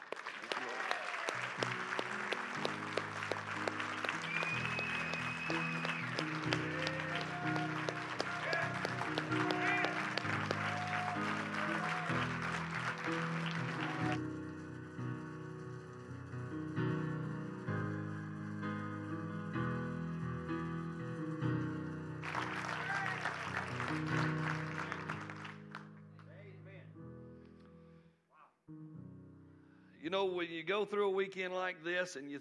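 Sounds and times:
audience applause: 0.0s - 14.3s, 22.2s - 25.9s
scattered cheers: 0.3s - 1.8s, 3.4s - 14.2s, 22.3s - 25.2s
keyboard music: 1.3s - 27.7s
speech: 30.1s - 32.4s.

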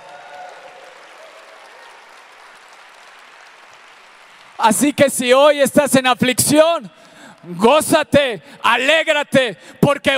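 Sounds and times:
crowd applause: 0.0s - 5.2s
speech: 4.6s - 10.1s.

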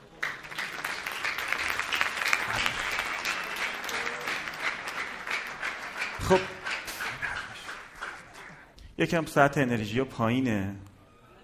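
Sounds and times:
audience applauding: 0.0s - 8.8s
speech: 6.3s - 6.5s, 9.0s - 10.9s.

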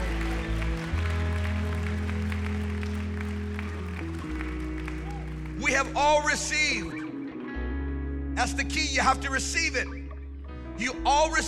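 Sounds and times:
audience clapping: 0.0s - 7.0s
low keyboard chords: 0.0s - 11.4s
speech: 5.6s - 7.0s, 8.4s - 10.0s, 10.8s - 11.4s.

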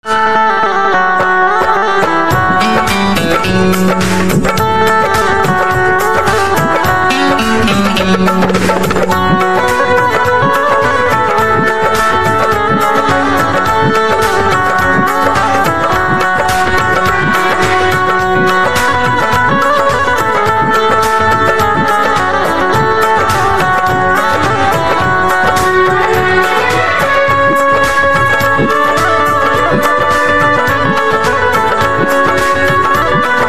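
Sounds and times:
banjo: 0.6s - 33.4s.

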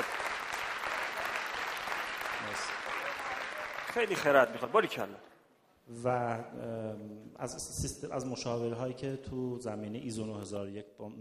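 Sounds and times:
audience applause: 0.0s - 4.9s
speech: 3.9s - 5.3s, 5.9s - 11.1s.

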